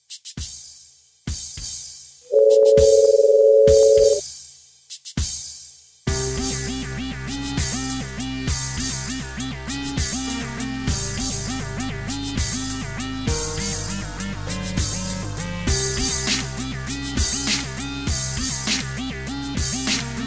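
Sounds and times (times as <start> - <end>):
beat: 2.4 - 4.2, 6.1 - 20.2.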